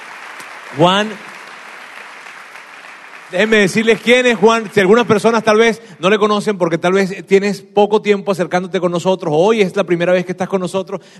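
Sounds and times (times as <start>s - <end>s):
audience applause: 0.0s - 5.8s
speech: 0.7s - 1.3s, 3.3s - 11.1s.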